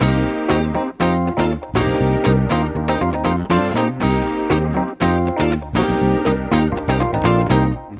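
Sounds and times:
nu disco backing track in C minor: 0.0 - 7.9.

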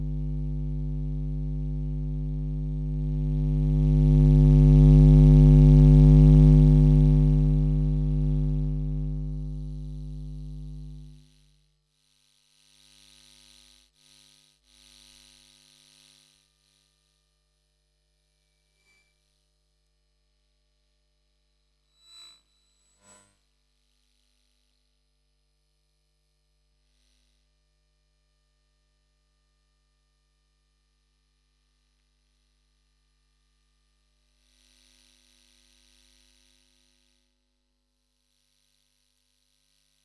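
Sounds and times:
electromagnetic field hum: 0.0 - 11.3.

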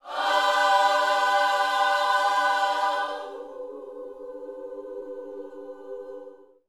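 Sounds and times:
gospel vocal phrase: 0.0 - 6.4.

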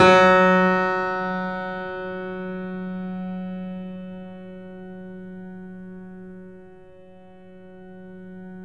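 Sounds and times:
Yamaha piano with sustain: 0.0 - 6.5.

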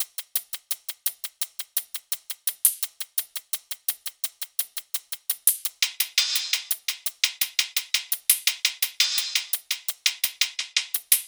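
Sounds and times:
hi-hat loop at 170 bpm: 0.0 - 11.2.

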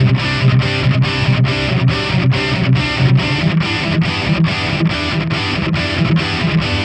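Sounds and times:
distorted guitar in E minor: 0.0 - 6.8.

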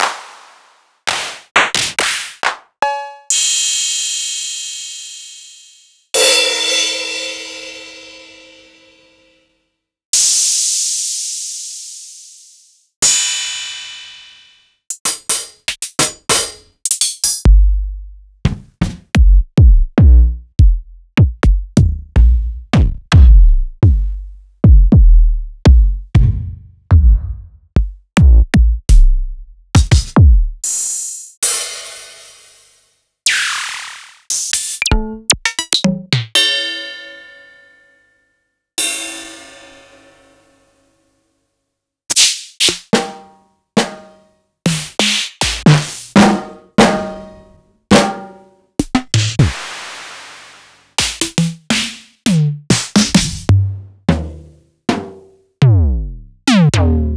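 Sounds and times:
drum samples: 0.0 - 8.4, 14.9 - 36.6, 42.1 - 57.1.

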